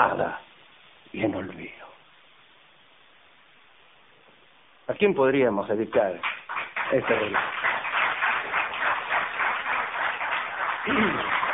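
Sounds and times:
speech: 0.0 - 0.4, 1.1 - 1.9, 4.9 - 7.7, 10.8 - 11.4
applause: 5.9 - 11.5.

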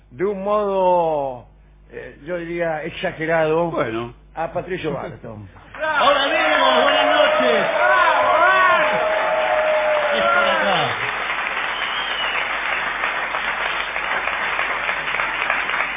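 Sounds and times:
speech: 0.1 - 7.9
excited cheering voices: 5.7 - 12.3
audience ovation and applause: 5.7 - 15.9
whistles: 11.6 - 12.8.

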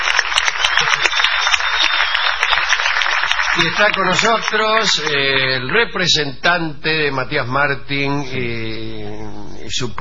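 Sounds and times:
audience ovation applause: 0.0 - 5.8
speech: 3.6 - 10.0.

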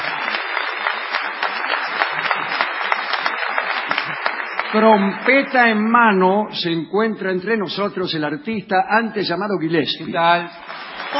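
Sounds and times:
audience ovation applause: 0.0 - 5.7, 10.6 - 11.1
speech: 4.7 - 11.1.

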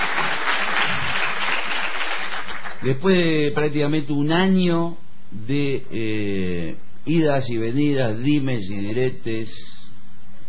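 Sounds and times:
applause: 0.0 - 2.9
speech: 2.8 - 9.7.

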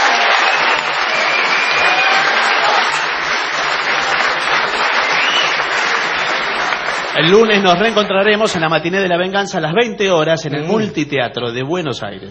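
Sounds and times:
audience applause in Tandil: 0.0 - 8.6
speech: 7.2 - 12.2.

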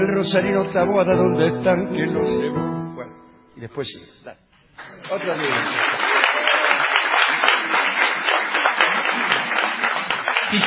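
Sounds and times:
speech: 0.2 - 6.2
audience applause: 4.8 - 10.6.

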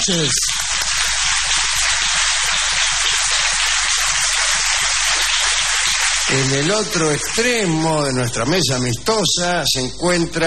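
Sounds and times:
speech: 0.0 - 0.6, 6.3 - 10.4
theatre audience applause: 0.0 - 8.1.

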